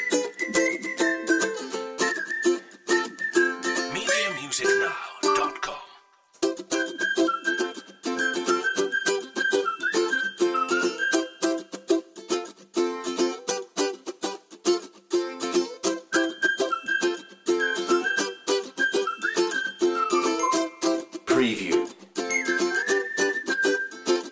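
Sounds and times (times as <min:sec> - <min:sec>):
whistles: 0:00.0 - 0:04.1, 0:06.7 - 0:11.6, 0:16.0 - 0:20.8, 0:22.2 - 0:24.2
ukulele: 0:00.0 - 0:24.2.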